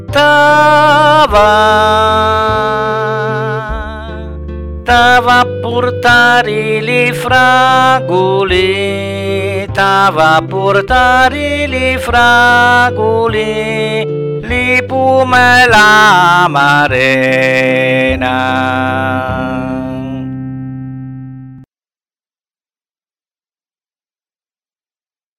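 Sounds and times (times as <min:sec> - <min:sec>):
musical instruments: 0:00.0 - 0:21.7
voice: 0:00.2 - 0:04.2, 0:04.9 - 0:20.3.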